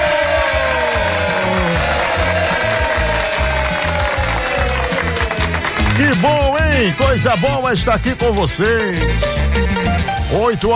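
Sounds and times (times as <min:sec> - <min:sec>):
studio audience cheering: 0:00.0 - 0:07.5
studio audience clapping: 0:00.0 - 0:10.3
pounding rhythmic beat: 0:00.0 - 0:10.7
speech: 0:06.2 - 0:10.7.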